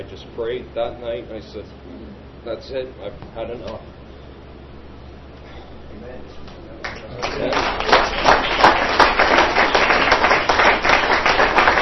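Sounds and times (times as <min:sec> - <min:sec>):
speech: 0:00.0 - 0:04.0, 0:07.2 - 0:08.2
audience clapping: 0:06.8 - 0:11.7.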